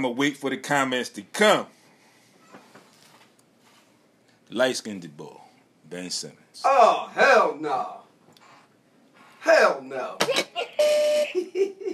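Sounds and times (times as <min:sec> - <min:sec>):
speech: 0:00.0 - 0:01.8, 0:04.5 - 0:08.0, 0:09.4 - 0:11.9
buzzer sound effect: 0:10.6 - 0:11.4.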